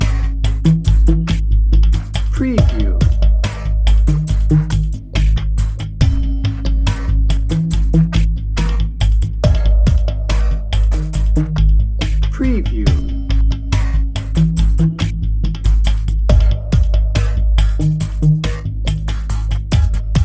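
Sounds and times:
pulsing tension drone: 0:00.0 - 0:20.2.

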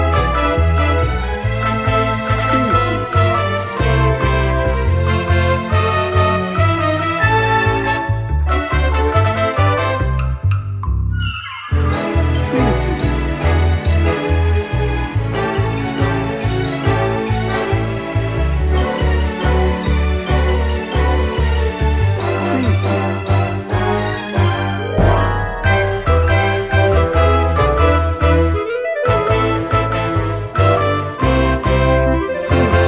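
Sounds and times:
Broadway style music without drums: 0:00.0 - 0:32.8.

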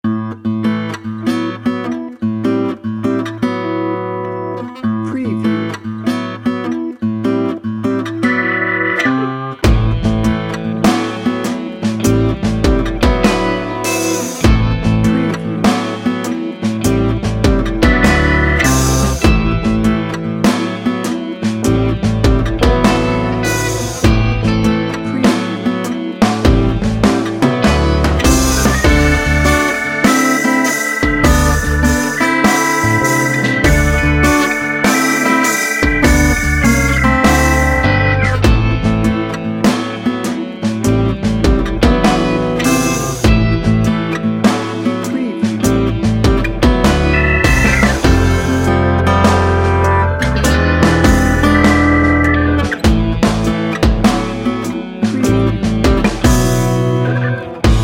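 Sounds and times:
blues music bed: 0:00.0 - 0:57.8.

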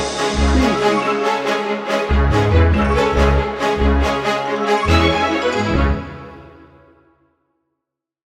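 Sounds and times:
music bed without drums: 0:00.0 - 0:06.2.

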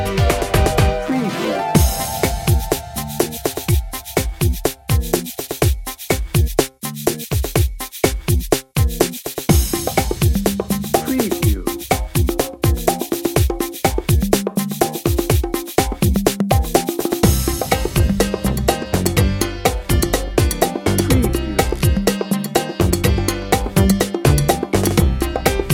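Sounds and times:
cha cha hip house music: 0:00.0 - 0:25.7.

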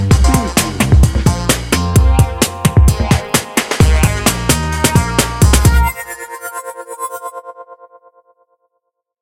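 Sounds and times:
bouncy hip hop music bed: 0:00.1 - 0:05.8.

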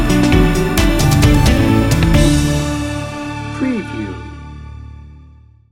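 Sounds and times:
music sting bumper: 0:00.2 - 0:04.2.

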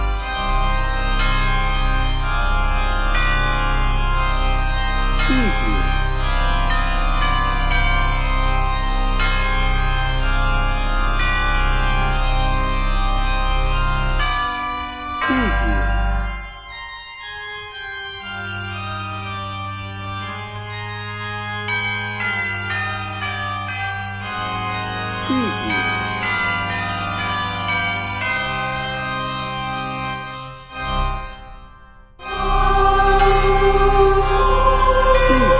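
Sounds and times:
bells: 0:00.0 - 0:35.5
organ: 0:00.0 - 0:35.5
choir: 0:32.2 - 0:35.5.

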